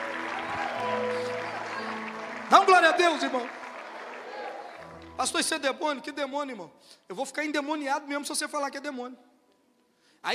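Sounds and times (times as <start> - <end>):
audience applauding: 0.0 - 5.4
speech: 2.6 - 3.6, 5.2 - 9.3.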